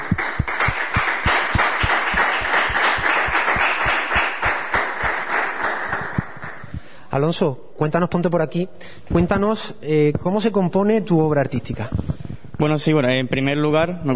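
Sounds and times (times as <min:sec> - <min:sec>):
crowd applauding: 0:00.0 - 0:06.7
speech: 0:07.2 - 0:12.0, 0:12.6 - 0:14.1.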